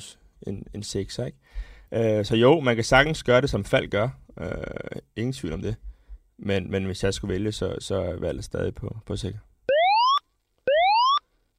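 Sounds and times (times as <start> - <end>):
speech: 0.0 - 9.5
electronic alarm tone sweeping upward signalling a contest: 9.7 - 11.2.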